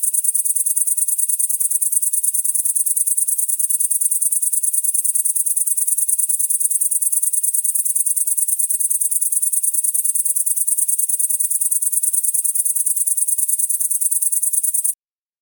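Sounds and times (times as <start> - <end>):
great green bush-cricket stridulating: 0.1 - 15.0.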